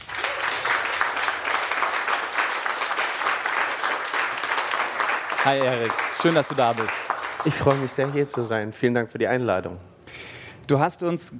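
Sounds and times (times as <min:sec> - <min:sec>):
applause: 0:00.0 - 0:08.7
speech: 0:05.4 - 0:09.9, 0:10.7 - 0:11.3.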